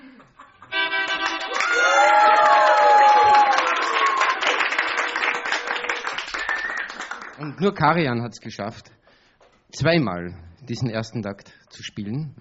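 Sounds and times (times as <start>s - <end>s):
audience clapping: 0.9s - 7.8s
speech: 7.5s - 9.0s, 9.7s - 12.3s.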